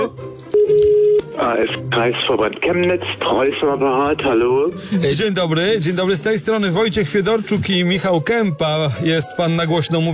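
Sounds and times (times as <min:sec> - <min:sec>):
telephone ringback tone: 0:00.5 - 0:01.3
speech: 0:01.5 - 0:10.1.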